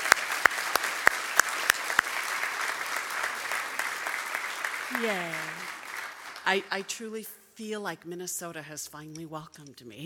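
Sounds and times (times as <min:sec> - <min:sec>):
audience applauding: 0:00.0 - 0:07.0
speech: 0:04.9 - 0:05.6, 0:06.4 - 0:10.0.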